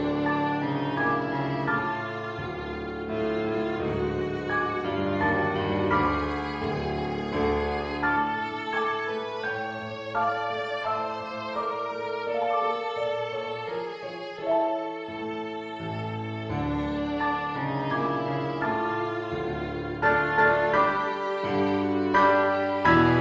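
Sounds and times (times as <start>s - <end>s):
piano backing track: 0.0s - 23.2s
violin backing track: 0.0s - 23.2s.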